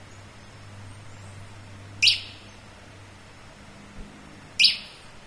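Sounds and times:
bird calling with high clipped chirps: 0.1 - 2.7, 4.6 - 5.1.

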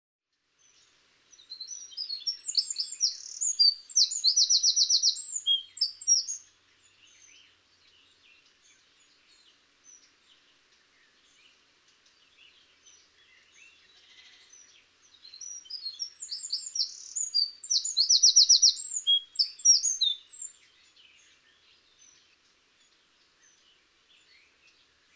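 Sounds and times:
hiss: 0.3 - 25.1
Eurasian wren singing: 1.4 - 22.3.

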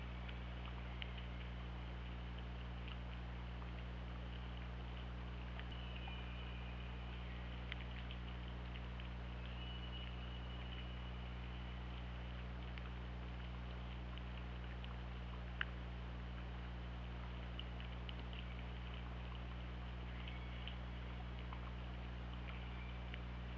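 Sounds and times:
low underwater hum: 0.0 - 23.5
killer whale whistles: 9.4 - 11.7.

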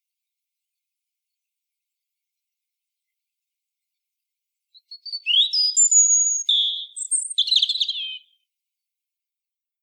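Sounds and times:
European robin singing: 4.7 - 8.4.

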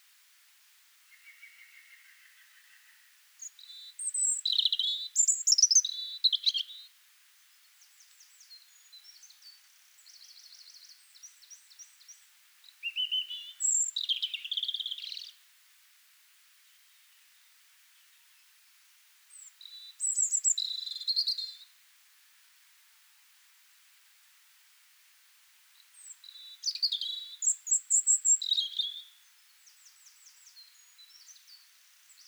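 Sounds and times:
European robin singing: 3.4 - 6.9, 8.3 - 15.4, 19.3 - 21.6, 26.0 - 32.2.

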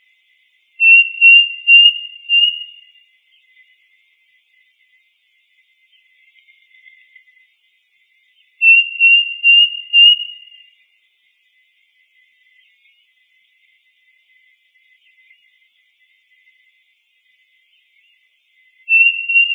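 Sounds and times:
bird giving a thin high whistle: 0.8 - 2.9, 8.6 - 10.7, 18.9 - 19.5.

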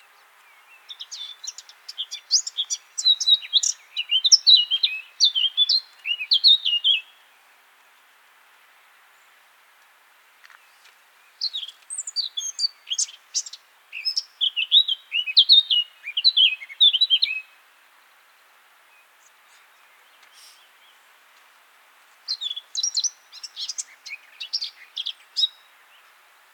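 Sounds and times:
Eurasian blackcap song: 0.4 - 7.2, 11.4 - 17.5, 22.3 - 26.1.

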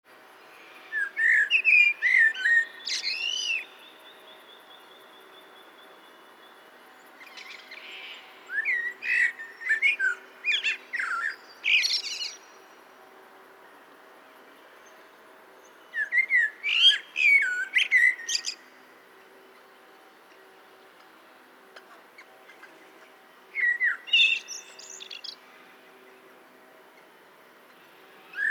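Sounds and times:
common blackbird singing: 0.7 - 6.6, 7.2 - 12.6, 15.8 - 18.7, 23.5 - 25.5.

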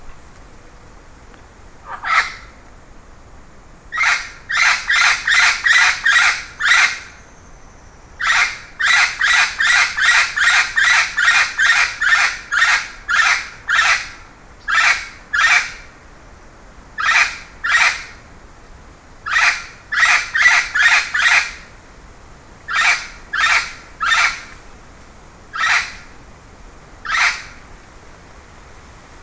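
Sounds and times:
bird harsh rasping calls: 1.8 - 2.5, 3.9 - 7.1, 8.2 - 15.8, 17.0 - 18.2, 19.2 - 21.6, 22.7 - 24.5, 25.5 - 26.1, 27.0 - 27.6.

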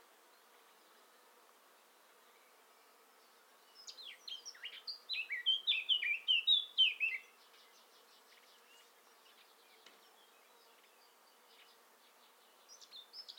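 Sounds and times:
Eurasian blackcap song of mellow whistled notes: 3.9 - 7.2.

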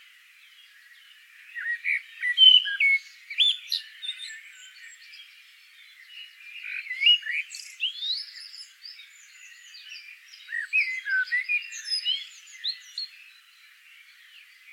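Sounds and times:
common blackbird fluty whistled notes: 1.5 - 4.9, 6.6 - 13.1.

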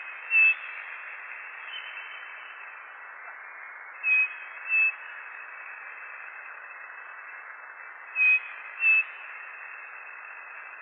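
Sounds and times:
steady hiss: 0.0 - 10.8
bird whistling: 0.3 - 0.6, 4.0 - 5.0, 8.2 - 9.1.

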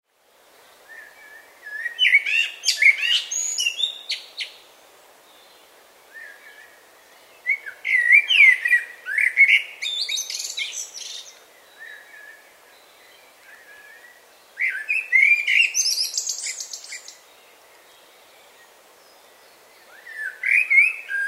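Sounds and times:
Common blackbird singing: 0.9 - 4.6, 7.4 - 17.2, 19.1 - 21.2.

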